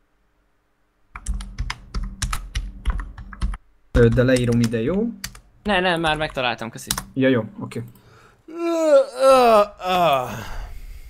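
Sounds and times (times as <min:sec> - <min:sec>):
speech: 0:04.0 - 0:10.6
loud yawn: 0:08.5 - 0:11.0.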